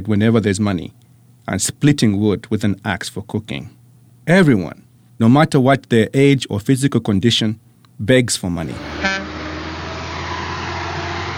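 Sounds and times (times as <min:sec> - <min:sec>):
speech: 0:00.0 - 0:09.2
traffic on the Lagos–Benin highway in Nigeria: 0:08.8 - 0:11.3.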